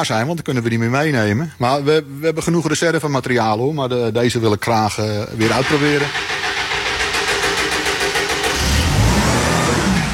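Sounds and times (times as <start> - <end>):
speech: 0.0 - 6.4
engine starting and revving: 5.4 - 10.1.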